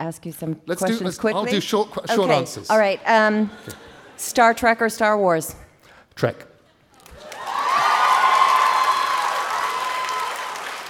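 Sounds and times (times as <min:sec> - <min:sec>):
speech: 0:00.0 - 0:05.6, 0:06.2 - 0:06.5
audience applause: 0:07.1 - 0:10.8.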